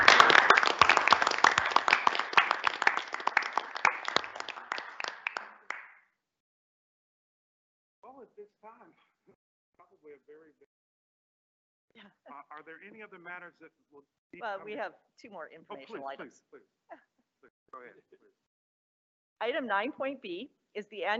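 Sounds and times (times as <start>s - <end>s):
laughter: 0.0s - 5.1s, 12.5s - 13.6s, 14.4s - 14.9s, 15.7s - 16.5s
audience applause: 0.0s - 5.9s
speech: 8.3s - 10.9s, 11.9s - 18.5s, 19.4s - 21.1s.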